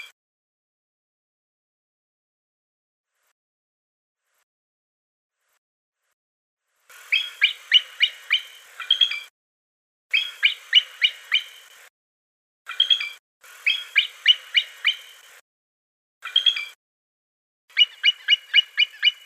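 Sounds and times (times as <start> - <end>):
bald eagle calling: 7.1 - 9.3, 10.1 - 11.7, 12.7 - 15.3, 17.7 - 19.2.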